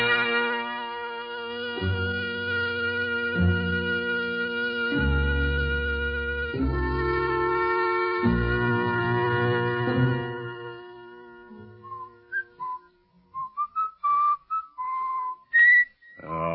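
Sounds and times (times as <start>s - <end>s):
low musical drone: 0.0s - 12.3s
person whistling a tune: 11.8s - 16.2s.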